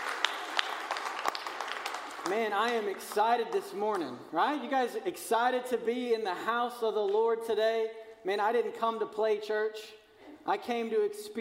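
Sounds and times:
audience clapping: 0:00.0 - 0:04.2
speech: 0:02.3 - 0:11.3.

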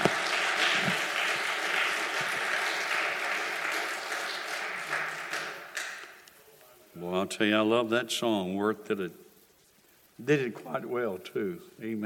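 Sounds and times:
audience clapping hands: 0:00.0 - 0:06.3
speech: 0:07.3 - 0:09.2, 0:10.2 - 0:12.0.

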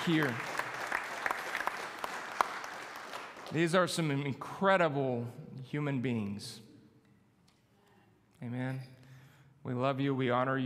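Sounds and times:
speech: 0:00.0 - 0:00.5, 0:03.5 - 0:06.6, 0:08.4 - 0:08.9, 0:09.6 - 0:10.6
crowd applauding: 0:00.0 - 0:03.8.

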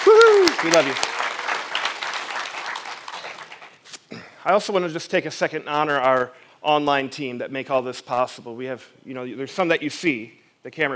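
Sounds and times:
audience applause: 0:00.0 - 0:03.8
speech: 0:00.6 - 0:01.2, 0:04.4 - 0:10.9.

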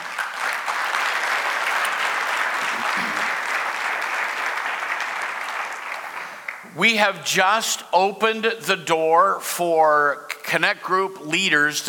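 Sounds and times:
audience applauding: 0:00.0 - 0:06.8
speech: 0:06.8 - 0:11.8.

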